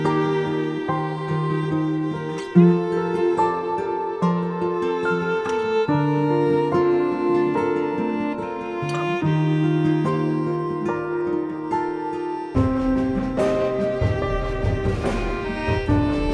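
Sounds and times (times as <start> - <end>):
chilled violin playing: 0.0 - 16.3.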